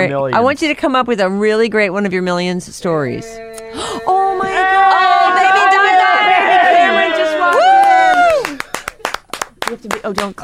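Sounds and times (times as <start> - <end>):
speech: 0.0 - 5.4, 10.0 - 10.4
loud excited voices: 3.2 - 8.9
people clapping: 4.8 - 10.4.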